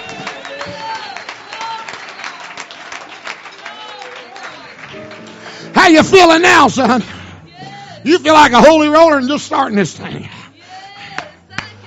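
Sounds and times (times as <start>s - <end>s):
audience hand clapping: 0.0s - 6.4s, 11.1s - 11.7s
speech: 5.8s - 7.2s, 8.0s - 10.3s.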